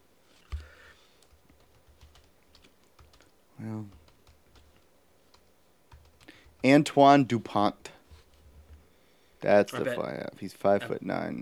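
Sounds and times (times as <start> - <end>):
typing on a computer keyboard: 0.5 - 6.7
speech: 6.6 - 7.9, 9.4 - 11.4.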